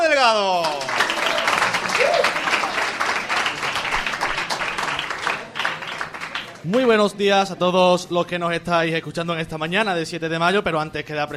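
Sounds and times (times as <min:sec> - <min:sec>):
applause: 0:00.2 - 0:07.0
speech: 0:06.6 - 0:11.3.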